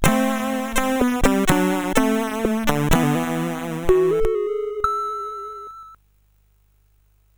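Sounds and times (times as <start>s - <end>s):
SID CSG8580R5 chip music: 0.0s - 5.6s.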